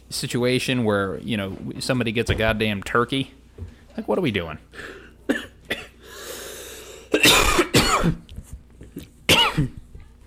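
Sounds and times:
speech: 0:00.1 - 0:05.4, 0:08.0 - 0:08.2
person coughing and choking on sparkling water: 0:05.3 - 0:06.0, 0:06.9 - 0:08.3, 0:09.3 - 0:10.2.

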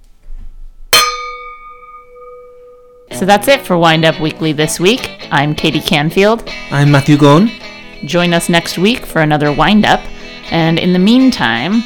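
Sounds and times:
wine glasses clinking in a toast: 0:01.0 - 0:03.1
speech: 0:03.2 - 0:11.8.

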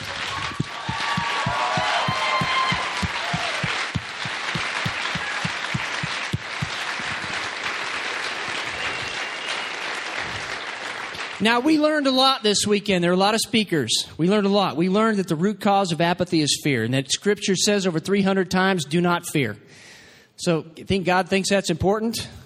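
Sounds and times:
large crowd applauding loudly: 0:00.0 - 0:11.4
speech: 0:11.4 - 0:19.8, 0:20.4 - 0:22.4.

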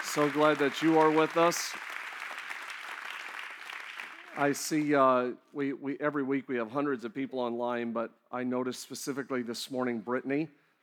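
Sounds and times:
large audience applause: 0:00.0 - 0:04.8
speech: 0:00.2 - 0:01.9, 0:04.4 - 0:10.6.

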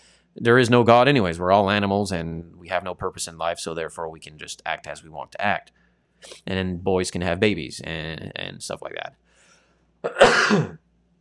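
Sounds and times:
speech: 0:00.4 - 0:09.2, 0:10.0 - 0:10.8
sneeze: 0:10.1 - 0:10.8.

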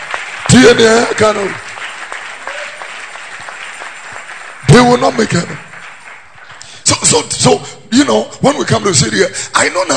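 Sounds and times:
audience clapping: 0:00.0 - 0:07.6
speech: 0:00.5 - 0:01.7, 0:04.7 - 0:05.7, 0:07.1 - 0:09.9.

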